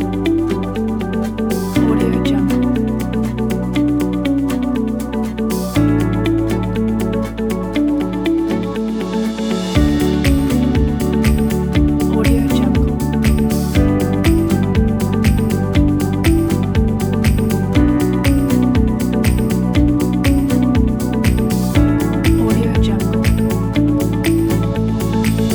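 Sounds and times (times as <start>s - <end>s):
corporate advertising presentation music: 0.0s - 25.5s.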